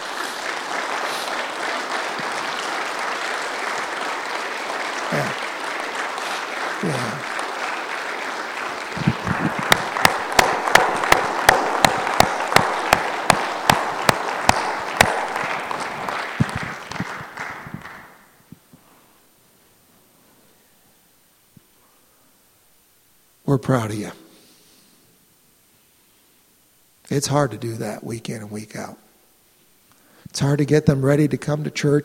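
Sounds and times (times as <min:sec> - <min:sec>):
murmur of voices: 0:00.0 - 0:15.4
audience applauding: 0:00.0 - 0:18.4
speech: 0:23.6 - 0:24.2, 0:27.1 - 0:29.0, 0:30.4 - 0:32.0.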